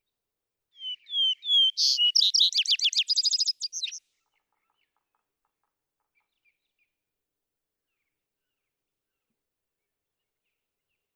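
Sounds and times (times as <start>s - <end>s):
vesper sparrow song: 0.8s - 4.0s.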